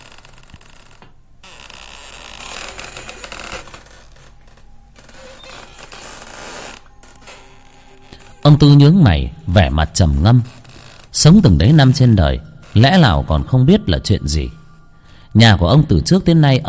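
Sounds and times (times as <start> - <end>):
hammock creaking against wooden beam: 0.0 - 8.8, 9.4 - 13.0
speech: 8.5 - 10.6, 11.2 - 14.6, 15.3 - 16.6.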